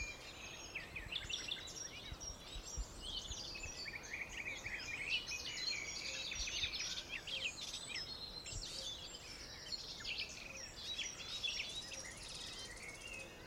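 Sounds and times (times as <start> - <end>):
many birds chirping and trilling in le bocage: 0.0 - 13.4.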